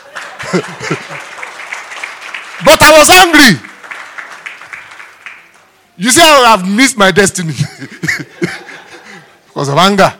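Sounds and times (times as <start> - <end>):
laughter: 0.0 - 1.5, 7.5 - 9.4
audience applause: 0.0 - 5.8
speech: 0.5 - 1.4, 2.6 - 3.7, 6.0 - 8.5, 9.6 - 10.1.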